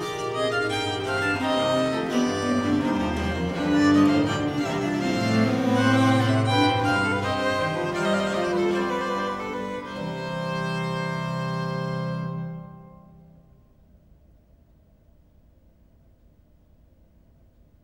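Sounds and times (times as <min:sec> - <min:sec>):
viol consort playing an air in C minor: 0:00.0 - 0:13.4.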